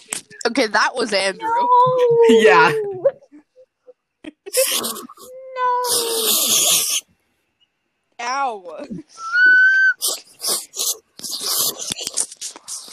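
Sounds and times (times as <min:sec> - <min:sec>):
speech: 0:00.4 - 0:02.8
slurping noises: 0:04.5 - 0:07.0, 0:09.8 - 0:12.9.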